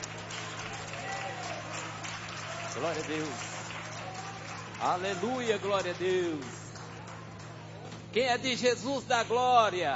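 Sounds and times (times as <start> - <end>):
church congregation applauding as a singer is welcomed: 0.0 - 8.2
speech: 2.8 - 3.6, 4.8 - 6.6, 8.1 - 9.9.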